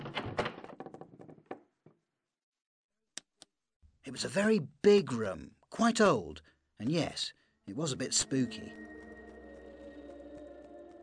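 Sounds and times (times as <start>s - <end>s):
door opening: 0.0s - 1.6s
speech: 4.0s - 8.9s.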